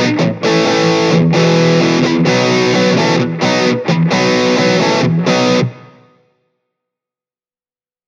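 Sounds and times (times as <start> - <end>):
overdrive pedal guitar at half drive: 0.0 - 6.3.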